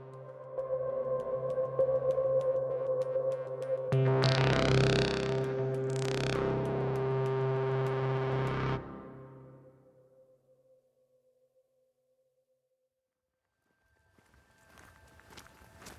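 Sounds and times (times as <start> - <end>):
loud sustained tone: 0.0 - 10.2
footsteps walking through deep woods on a remote parcel of land: 14.0 - 15.9.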